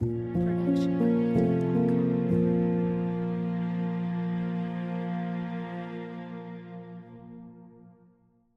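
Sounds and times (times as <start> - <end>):
mysterious piano: 0.0 - 8.1.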